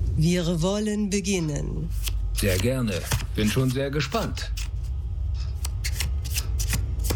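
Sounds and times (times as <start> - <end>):
speech: 0.2 - 4.6
deck of tarot cards printed with Maya symbols being shuffled: 2.0 - 4.9, 5.6 - 7.1.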